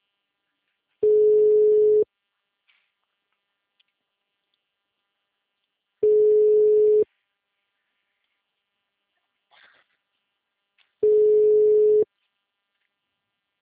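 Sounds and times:
telephone dial tone: 1.0s - 2.0s, 6.0s - 7.0s, 11.0s - 12.0s.

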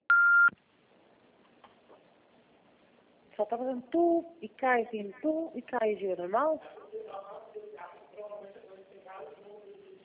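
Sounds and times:
voicemail beep: 0.1s - 0.5s
speech: 3.4s - 7.5s.

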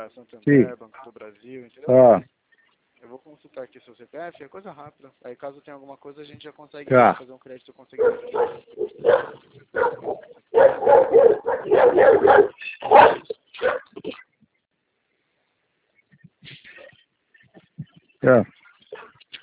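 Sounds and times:
speech: 0.0s - 2.4s, 3.0s - 14.2s, 18.2s - 18.6s
dog barking: 8.0s - 14.0s, 18.9s - 19.4s.

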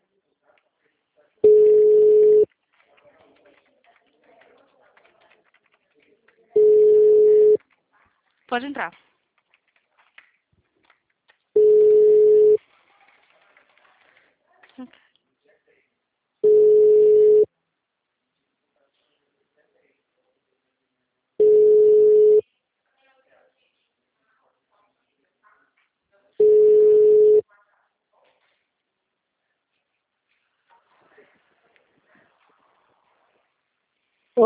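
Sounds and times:
phone line tone beeps after a dropped call: 1.4s - 2.5s, 6.6s - 7.6s, 11.6s - 12.6s, 16.4s - 17.5s, 21.4s - 22.4s, 26.4s - 27.4s
speech: 8.5s - 9.1s.

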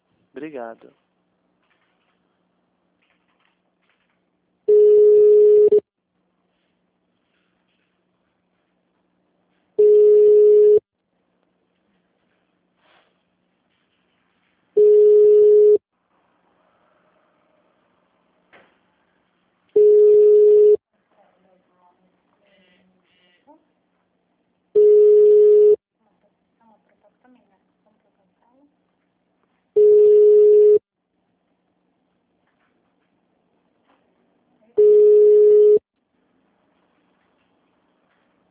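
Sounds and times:
speech: 0.4s - 1.1s
telephone tones while a call is being transferred: 4.7s - 5.8s, 9.8s - 10.8s, 14.8s - 15.8s, 19.8s - 20.8s, 24.8s - 25.8s, 29.8s - 30.8s, 34.8s - 35.8s.

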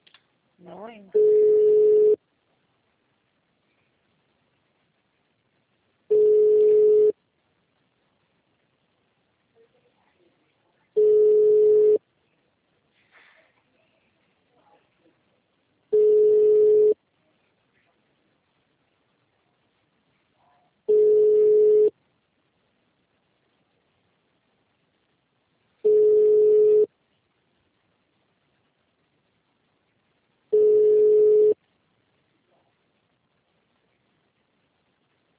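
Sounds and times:
speech: 0.6s - 1.5s
telephone ringing on an unanswered call: 1.2s - 2.2s, 6.1s - 7.1s, 11.0s - 12.0s, 16.0s - 17.0s, 20.9s - 21.9s, 25.8s - 26.9s, 30.6s - 31.6s.

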